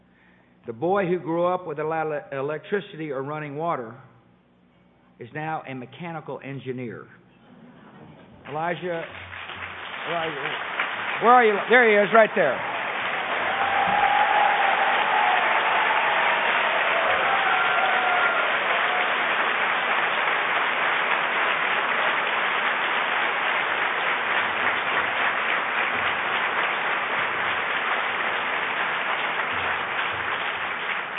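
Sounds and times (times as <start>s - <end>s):
speech: 0.7s - 4.1s, 5.2s - 7.2s, 8.5s - 9.2s, 10.0s - 12.7s
audience applause: 8.5s - 31.1s.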